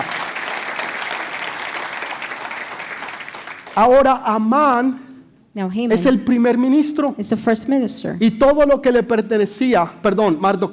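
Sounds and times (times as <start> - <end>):
audience applause: 0.0 - 3.8
speech: 3.8 - 5.0, 5.6 - 10.7.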